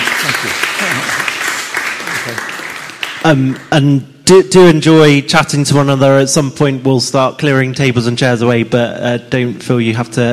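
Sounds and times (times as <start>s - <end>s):
audience applause: 0.0s - 3.7s
speech: 0.4s - 1.3s, 3.2s - 10.3s.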